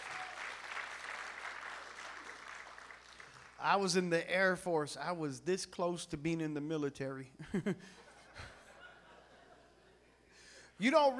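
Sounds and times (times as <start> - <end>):
audience applause: 0.0 - 3.6
speech: 3.6 - 8.5, 10.8 - 11.1
laughter: 7.4 - 10.2.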